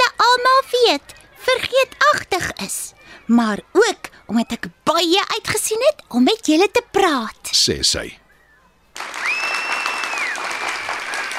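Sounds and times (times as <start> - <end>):
speech: 0.9 - 8.2
high whistling tone: 8.4 - 11.1
group of people applauding: 9.0 - 11.3.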